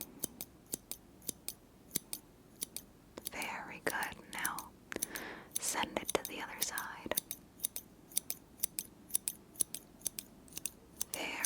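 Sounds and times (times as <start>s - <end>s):
scissors cutting hair in an ASMR session: 0.0s - 11.4s.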